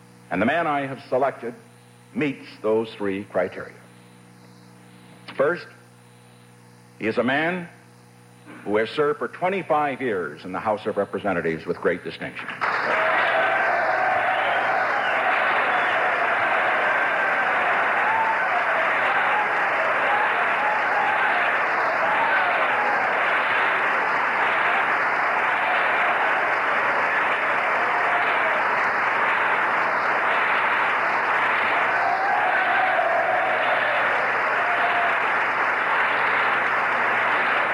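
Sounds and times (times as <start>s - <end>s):
speech: 0.3s - 3.8s, 5.4s - 5.8s, 7.0s - 7.8s, 8.5s - 13.1s
assembled legislators giving standing applause: 12.5s - 37.7s.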